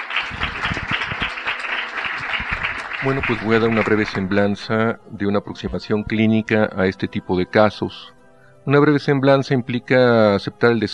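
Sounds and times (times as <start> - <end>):
conference audience applause welcoming a speaker: 0.0 - 4.8
speech: 3.0 - 10.9.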